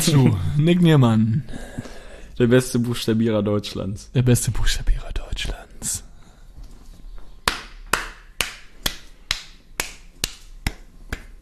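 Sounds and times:
speech: 0:00.0 - 0:01.8, 0:02.4 - 0:06.1
hiss: 0:00.0 - 0:11.4
hand clapping: 0:07.4 - 0:11.4.

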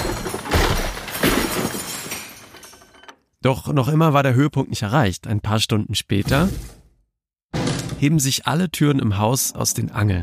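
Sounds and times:
broken pieces skittering and tinkling: 0:00.0 - 0:03.2
crockery and household objects crashing down: 0:00.0 - 0:03.3
speech: 0:03.4 - 0:06.8, 0:08.0 - 0:10.2.

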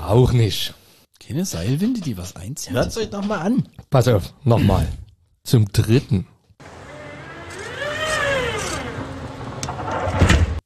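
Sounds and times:
speech: 0:00.1 - 0:06.7
tram door closing: 0:06.6 - 0:10.6.

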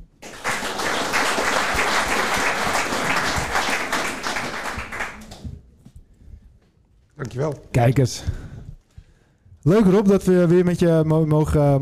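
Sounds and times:
audience applause for a guest: 0:00.2 - 0:05.5
speech: 0:07.2 - 0:08.5, 0:09.6 - 0:11.8.

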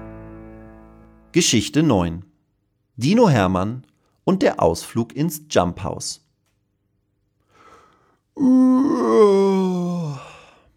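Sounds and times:
speech: 0:01.3 - 0:02.3, 0:03.0 - 0:06.2, 0:08.4 - 0:09.8
person imitating howling wind: 0:08.4 - 0:10.4.

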